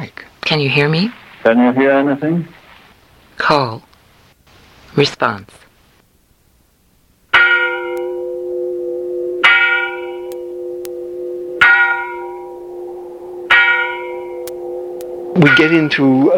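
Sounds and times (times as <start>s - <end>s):
speech: 0.0s - 2.6s, 3.4s - 3.9s, 5.0s - 5.6s, 15.4s - 16.3s
church bells ringing: 7.4s - 16.3s.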